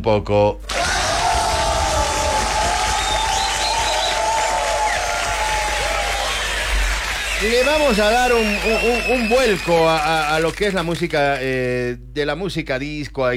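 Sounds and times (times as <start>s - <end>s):
speech: 0.0s - 0.7s, 7.4s - 13.3s
crowd applause: 0.6s - 11.0s.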